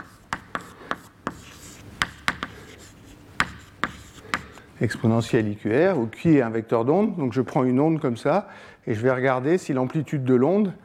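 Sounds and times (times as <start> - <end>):
writing on a board during a lecture on wave stability: 0.0 - 5.2
speech: 4.8 - 10.8.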